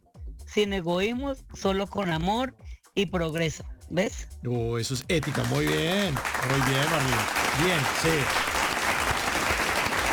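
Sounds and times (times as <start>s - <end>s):
speech: 0.5s - 8.5s
audience applause and ovation: 5.2s - 10.1s.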